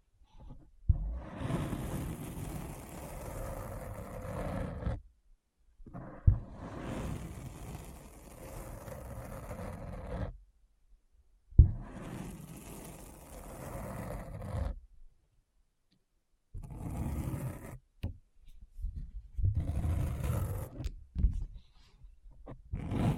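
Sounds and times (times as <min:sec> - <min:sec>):
deep scratching: 0:00.4 - 0:05.0, 0:05.9 - 0:10.4, 0:11.6 - 0:14.8, 0:16.6 - 0:17.8, 0:19.4 - 0:21.5, 0:22.4 - 0:23.1.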